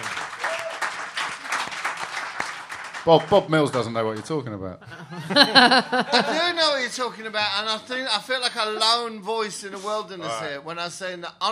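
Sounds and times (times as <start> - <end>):
audience applause: 0.0 - 4.3
speech: 3.0 - 11.5
laughter: 4.8 - 10.0.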